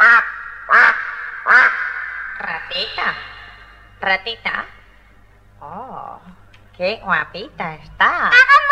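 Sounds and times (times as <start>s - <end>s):
duck quacking: 0.0s - 3.5s
speech: 2.7s - 3.3s, 4.0s - 4.7s, 6.8s - 8.6s.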